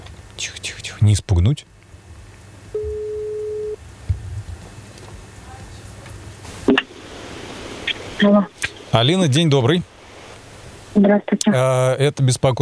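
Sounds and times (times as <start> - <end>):
speech: 0.4 - 1.7, 8.2 - 9.9, 11.0 - 12.6
telephone ringback tone on a phone line: 2.8 - 3.8.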